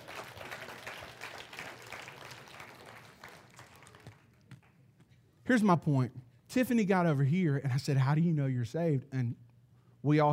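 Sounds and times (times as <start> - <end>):
audience clapping: 0.0 - 4.9
speech: 5.5 - 9.4, 10.0 - 10.3.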